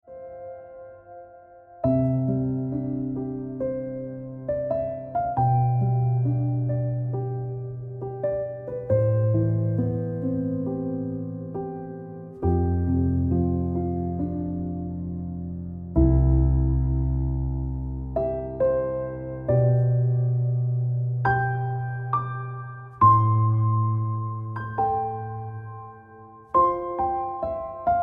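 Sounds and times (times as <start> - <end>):
piano ringtone music: 0.1 - 28.0.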